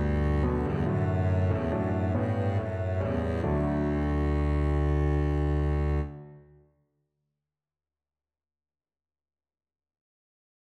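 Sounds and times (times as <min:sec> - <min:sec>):
double bass: 0:00.0 - 0:06.2.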